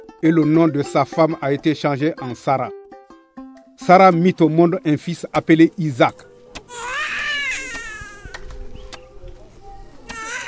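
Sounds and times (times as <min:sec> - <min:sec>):
speech: 0:00.2 - 0:02.8, 0:03.8 - 0:06.8
infant crying: 0:06.7 - 0:08.6, 0:10.1 - 0:10.4.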